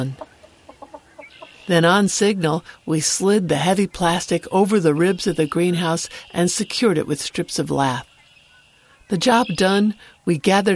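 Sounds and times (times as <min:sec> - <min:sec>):
speech: 0:00.0 - 0:00.2, 0:01.7 - 0:08.1, 0:09.1 - 0:10.7
chicken clucking: 0:00.0 - 0:01.7.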